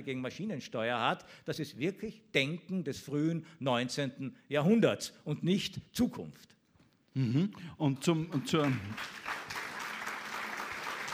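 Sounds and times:
speech: 0.0s - 6.6s, 7.2s - 9.4s
hesitant audience applause: 8.3s - 11.1s.

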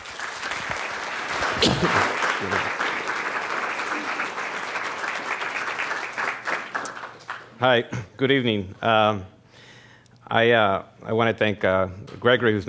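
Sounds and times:
audience applauding to welcome a journalist: 0.0s - 7.6s
speech: 1.6s - 2.8s, 7.6s - 9.4s, 10.3s - 12.6s.

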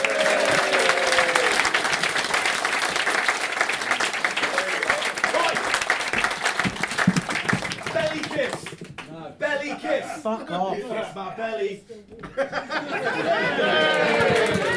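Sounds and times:
crowd applause: 0.0s - 9.0s, 12.9s - 14.7s
laughter: 9.4s - 11.2s, 12.1s - 14.7s
speech: 10.3s - 14.1s.

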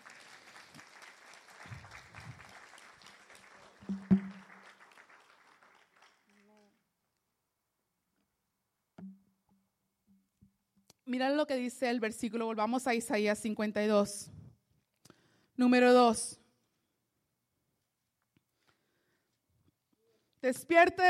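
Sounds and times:
audience applause: 0.0s - 6.7s
speech: 11.1s - 14.4s, 15.6s - 16.4s, 20.5s - 21.0s.

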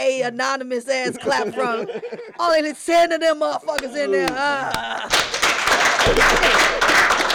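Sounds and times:
speech: 0.0s - 7.1s
laughter: 0.9s - 6.8s
small group clapping sound effect: 3.7s - 7.3s.

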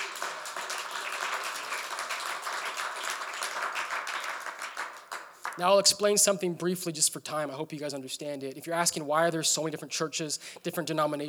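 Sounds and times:
audience clapping hands: 0.0s - 6.0s
speech: 5.6s - 11.2s.

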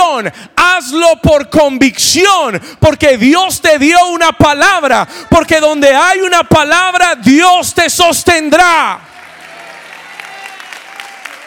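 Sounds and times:
speech: 0.2s - 9.1s
congregation clapping at a church service: 9.0s - 11.4s.

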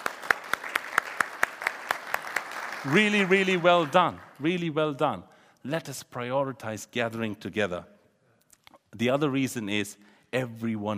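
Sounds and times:
audience clapping: 0.0s - 4.7s
speech: 2.8s - 7.9s, 8.9s - 10.9s.

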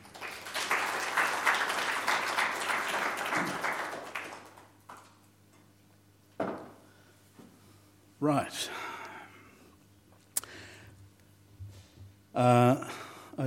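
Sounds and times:
audience applause welcoming a speaker to an evening talk: 0.0s - 5.2s
speech: 8.2s - 8.8s, 12.4s - 13.4s.

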